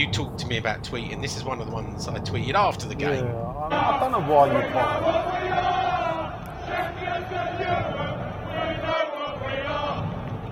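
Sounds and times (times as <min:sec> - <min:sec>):
speech: 0:00.0 - 0:05.9
football fans singing in a stadium: 0:03.6 - 0:10.5.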